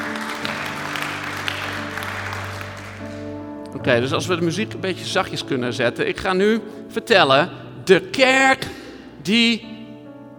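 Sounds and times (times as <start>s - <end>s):
church audience applause: 0.0s - 3.4s
speech: 3.8s - 9.7s.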